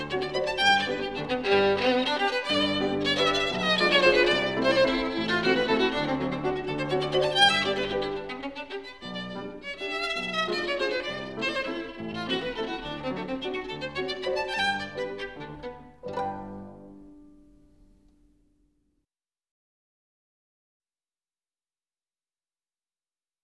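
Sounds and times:
violin: 0.0s - 18.1s
piano: 0.0s - 18.4s.

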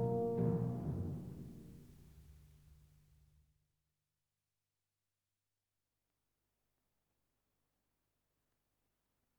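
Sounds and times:
horn concerto played very fast: 0.0s - 1.4s.

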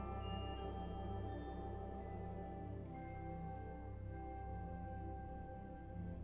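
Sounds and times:
suite for orchestra: 0.0s - 6.1s.

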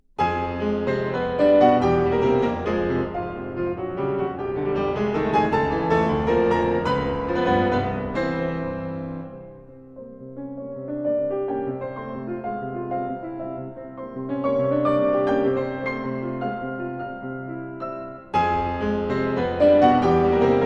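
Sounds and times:
piano piece: 0.0s - 20.6s.

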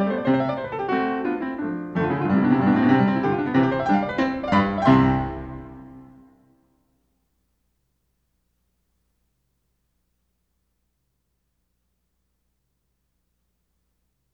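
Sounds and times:
piano sonata in C major, allegro: 0.0s - 6.5s.

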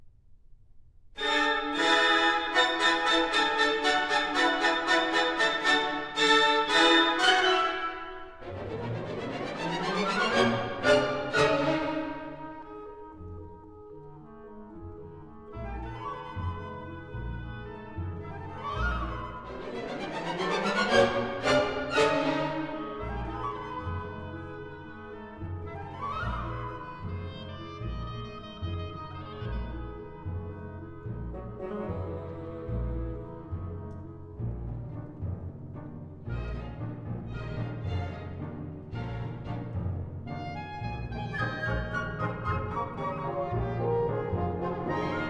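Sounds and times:
orchestra playing etudes: 1.2s - 45.2s.

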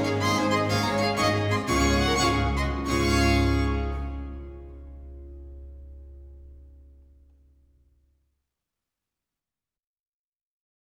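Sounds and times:
three violins and continuo playing in D major: 0.0s - 5.3s.

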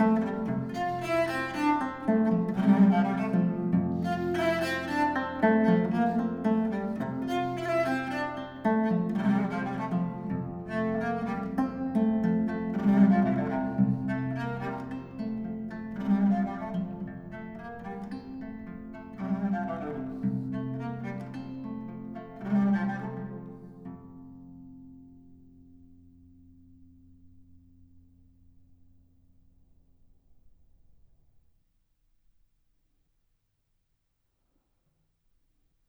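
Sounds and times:
saraband in F major: 0.0s - 24.7s.

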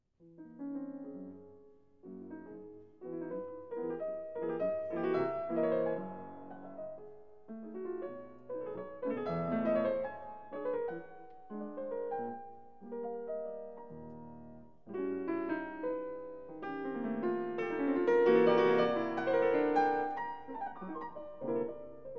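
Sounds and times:
piano piece in B major: 0.0s - 22.1s.

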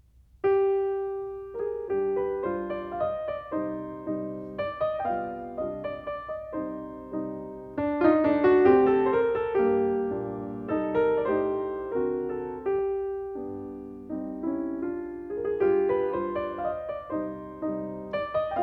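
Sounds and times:
piano mazurka in C minor: 0.0s - 18.6s.

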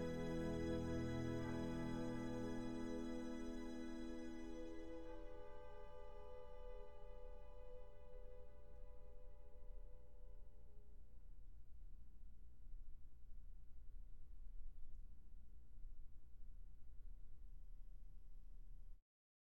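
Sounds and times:
symphonic poem: 0.0s - 10.0s.

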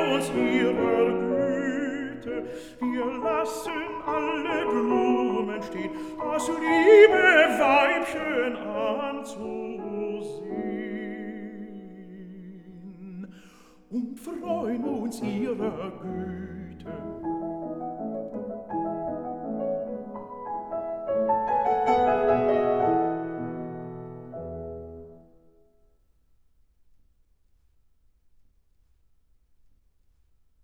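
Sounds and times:
person singing: 0.0s - 17.2s
piano: 0.0s - 25.9s.

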